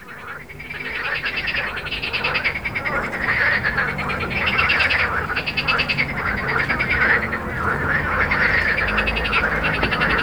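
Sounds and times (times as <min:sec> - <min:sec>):
frog chorus croaking in a garden: 0:00.0 - 0:10.2.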